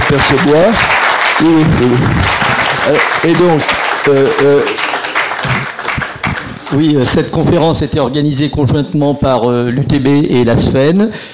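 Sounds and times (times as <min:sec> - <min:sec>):
crowd applauding loudly: 0:00.0 - 0:07.4
speech: 0:00.1 - 0:04.8, 0:06.7 - 0:11.3.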